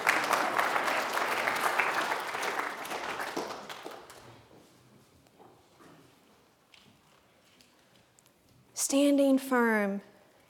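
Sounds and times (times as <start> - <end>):
audience applause: 0.0 - 4.4
speech: 8.9 - 10.1.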